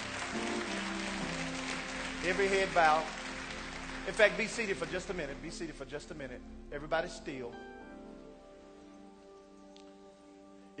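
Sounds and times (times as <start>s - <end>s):
audience applause: 0.0s - 5.6s
speech: 2.2s - 3.2s, 4.0s - 7.7s.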